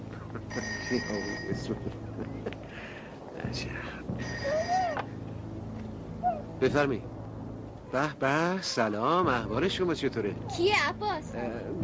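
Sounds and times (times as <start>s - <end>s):
speech: 0.5s - 5.2s, 6.6s - 7.1s, 7.9s - 11.8s
telephone ringing with trilling electronic tones: 0.6s - 1.7s, 4.2s - 4.8s.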